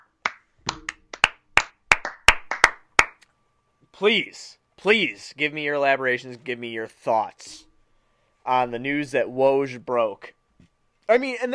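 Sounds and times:
single pair of hands clapping: 0.0 - 3.2
speech: 4.0 - 7.7, 8.4 - 10.4, 11.1 - 11.5.

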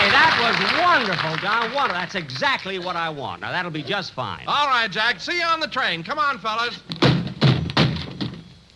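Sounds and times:
speech: 0.1 - 6.9
heavy trunk dropping and tumbling: 6.9 - 8.5.

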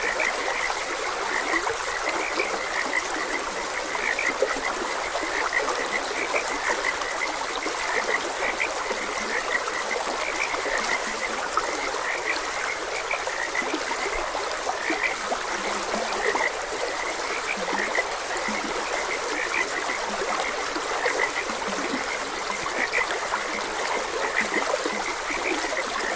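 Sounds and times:
frogs croaking: 0.0 - 26.1
stream water running: 0.0 - 26.1.

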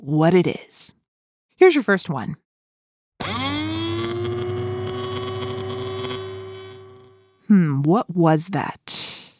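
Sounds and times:
speech: 0.0 - 1.0, 1.6 - 2.4, 7.5 - 9.0
dentist drill whining: 3.2 - 7.4.

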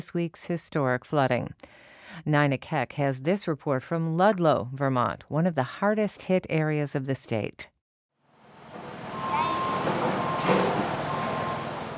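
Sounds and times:
speech: 0.0 - 7.7
heavy equipment bulldozing: 8.5 - 11.9
dump trucks and heavy equipment beeping: 8.7 - 11.9.

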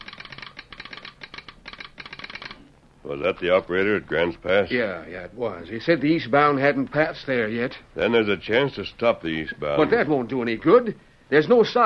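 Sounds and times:
telegraph instrument clicking: 0.0 - 2.6
speech: 3.0 - 11.8.

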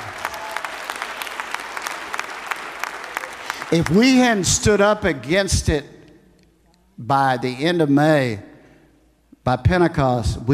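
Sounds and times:
audience applause: 0.0 - 4.4
speech: 3.7 - 5.9, 7.0 - 8.5, 9.5 - 10.5.

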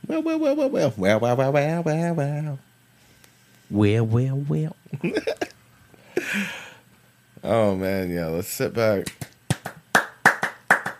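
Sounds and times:
speech: 0.1 - 2.7, 3.7 - 5.5, 7.4 - 9.3
hand clapping: 9.0 - 10.9.

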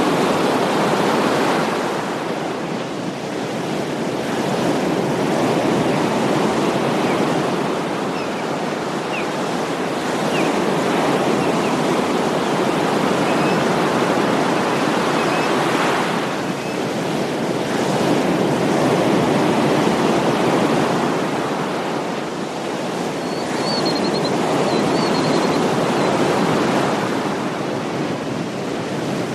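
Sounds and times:
small ocean waves: 0.0 - 29.3
faint bird chirps: 23.2 - 25.6.

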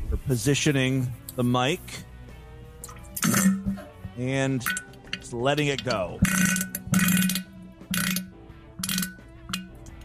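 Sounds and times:
speech: 0.3 - 2.1, 4.2 - 7.3
flatulent bowel movement into a toilet: 2.8 - 10.0.

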